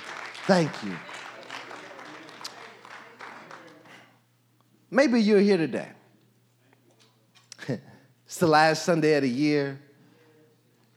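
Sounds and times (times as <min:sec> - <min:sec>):
audience clapping hands: 0:00.0 - 0:04.2
speech: 0:00.5 - 0:01.2, 0:04.9 - 0:06.0, 0:07.7 - 0:09.9.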